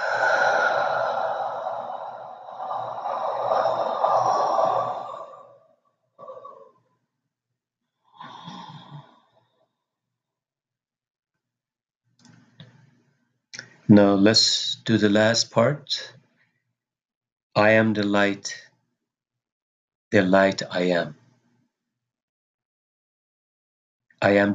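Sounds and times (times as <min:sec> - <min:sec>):
deep breath during a guided meditation: 0:00.0 - 0:05.6, 0:06.2 - 0:06.8, 0:08.0 - 0:09.4
soft breaths: 0:00.0 - 0:05.6
speech: 0:13.9 - 0:16.2, 0:17.6 - 0:18.6, 0:20.1 - 0:21.2, 0:24.2 - 0:24.5.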